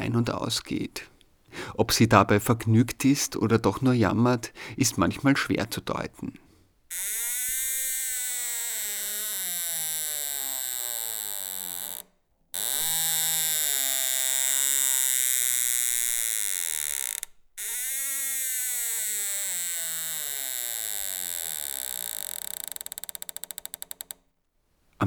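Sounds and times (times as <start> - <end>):
speech: 0.1 - 7.2
unoiled door hinge creaking: 6.9 - 24.2.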